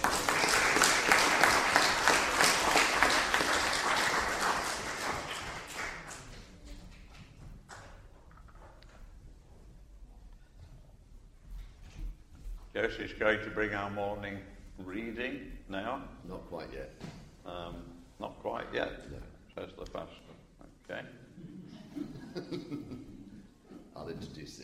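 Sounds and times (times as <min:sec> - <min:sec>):
crowd clapping: 0:00.0 - 0:06.7
speech: 0:12.9 - 0:20.3, 0:20.9 - 0:21.2, 0:24.0 - 0:24.6
laughter: 0:21.4 - 0:23.5.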